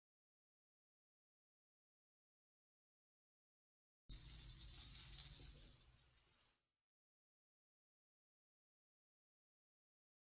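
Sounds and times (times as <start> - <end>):
furin wind chime: 4.1 - 6.6.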